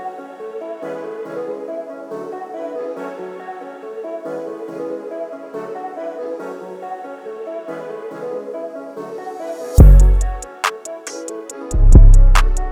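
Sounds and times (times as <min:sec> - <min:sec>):
instrumental type beat: 0:09.8 - 0:12.7.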